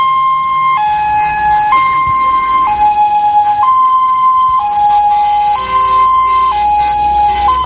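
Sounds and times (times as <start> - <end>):
faint vehicle rumble: 0.0 - 7.6
two-tone siren of passing rally warning car: 0.0 - 7.6.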